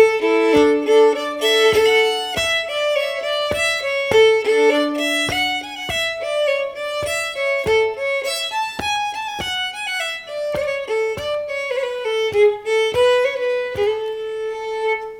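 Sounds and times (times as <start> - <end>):
slow polska folk tune: 0.0 - 15.1.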